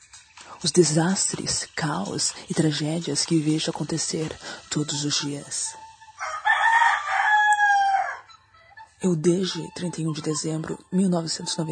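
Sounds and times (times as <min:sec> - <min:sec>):
speech: 0:00.6 - 0:05.8, 0:09.0 - 0:11.7
rooster crowing: 0:06.2 - 0:08.4.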